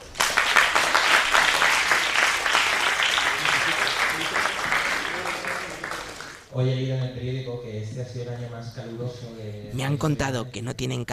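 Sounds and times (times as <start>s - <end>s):
audience applause: 0.0s - 6.5s
speech: 6.6s - 11.1s.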